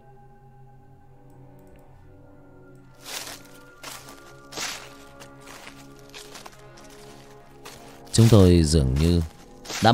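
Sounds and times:
footsteps approaching through dry branches on a forest floor: 0:03.0 - 0:09.9
speech: 0:08.2 - 0:09.9.

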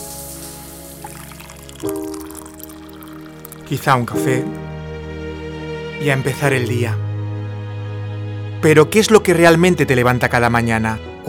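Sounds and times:
shower running: 0:00.0 - 0:03.7
speech: 0:01.8 - 0:02.1, 0:03.7 - 0:04.6, 0:06.0 - 0:07.0, 0:08.6 - 0:11.2.

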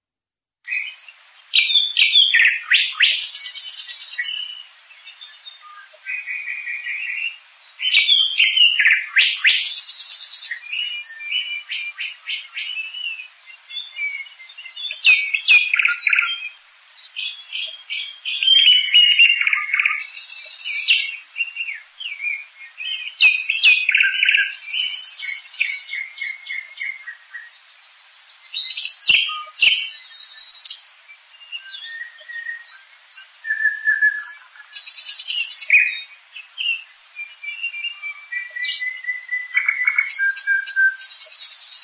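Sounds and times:
nightingales singing: 0:00.7 - 0:41.8.

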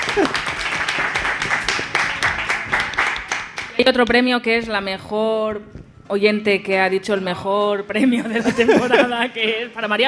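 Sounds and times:
laughter: 0:00.0 - 0:00.7, 0:08.0 - 0:09.5
crowd applauding: 0:00.0 - 0:03.8
speech: 0:00.2 - 0:00.5, 0:03.9 - 0:10.0.

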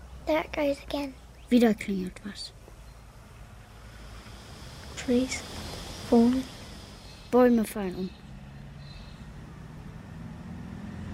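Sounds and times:
speech: 0:00.3 - 0:02.6, 0:05.0 - 0:06.6, 0:07.3 - 0:08.2
truck driving past: 0:02.8 - 0:11.1.

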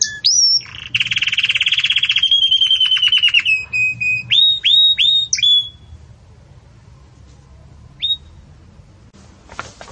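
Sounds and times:
Belgian canary singing: 0:00.0 - 0:06.0, 0:08.0 - 0:08.5.

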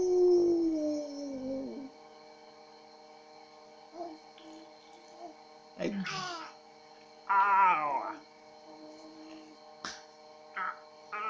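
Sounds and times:
voice imitating a wolf howl: 0:00.0 - 0:01.9, 0:07.3 - 0:08.2, 0:10.6 - 0:11.2
low steady hum: 0:00.0 - 0:11.2
speech: 0:05.9 - 0:06.4.

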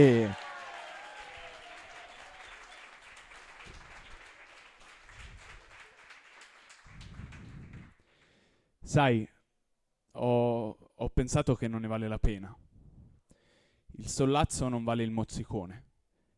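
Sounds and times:
speech: 0:00.0 - 0:00.4, 0:08.9 - 0:09.4, 0:10.2 - 0:12.6, 0:14.0 - 0:15.8
audience applause at a slam competition: 0:00.0 - 0:08.0.

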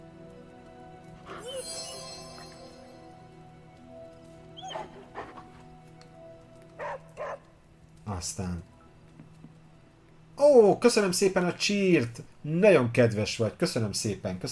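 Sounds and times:
dog barking: 0:06.8 - 0:07.4
speech: 0:08.2 - 0:08.7, 0:10.4 - 0:14.5.

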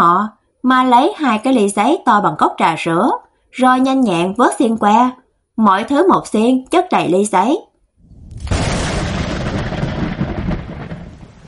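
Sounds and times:
speech: 0:00.0 - 0:07.7
rain: 0:08.0 - 0:11.4
rumbling thunder: 0:08.0 - 0:11.4.

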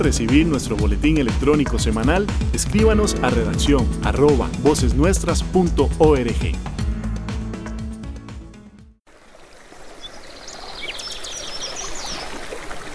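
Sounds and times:
speech: 0:00.0 - 0:06.8
short burst of music: 0:00.0 - 0:09.0
flowing river water: 0:09.1 - 0:12.9.

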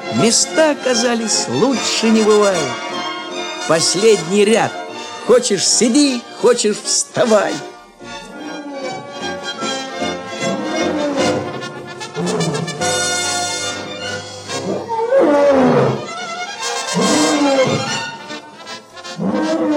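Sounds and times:
speech: 0:00.2 - 0:03.1, 0:03.7 - 0:07.7
Atlas lions roaring: 0:08.3 - 0:13.2, 0:14.4 - 0:16.2, 0:16.8 - 0:18.4, 0:19.0 - 0:19.7.

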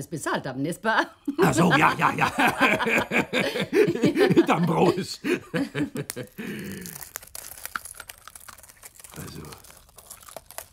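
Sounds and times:
speech: 0:00.0 - 0:07.2, 0:09.2 - 0:09.6
laughter: 0:01.4 - 0:06.7
glass being crunched by chewing: 0:06.0 - 0:10.7.

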